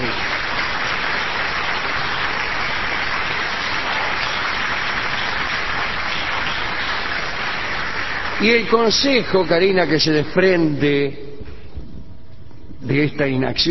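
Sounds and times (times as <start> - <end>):
audience applauding a guest: 0.0 - 10.4
speech: 8.4 - 11.3, 12.9 - 13.6.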